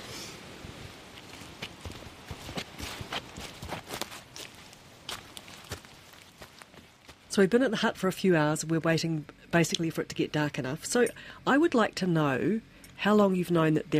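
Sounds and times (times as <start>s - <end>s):
constant hiss of wind: 0.0s - 6.4s
footsteps crunching along a trail: 0.7s - 7.4s
speech: 7.4s - 13.9s.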